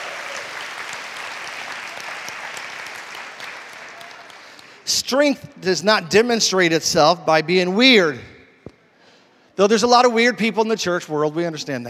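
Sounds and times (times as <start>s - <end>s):
audience hand clapping: 0.0s - 4.9s
speech: 4.9s - 8.3s, 9.6s - 11.8s.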